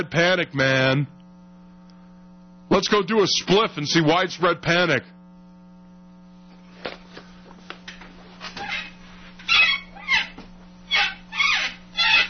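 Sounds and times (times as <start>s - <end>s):
speech: 0.0s - 1.2s, 2.7s - 5.2s
chair creaking: 6.7s - 12.2s.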